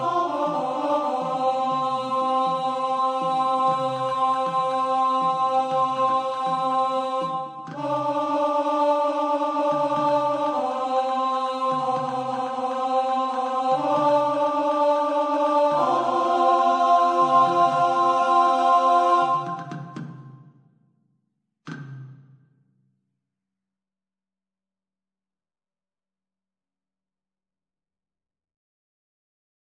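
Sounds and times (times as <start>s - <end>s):
tenor singing: 0.0s - 20.1s.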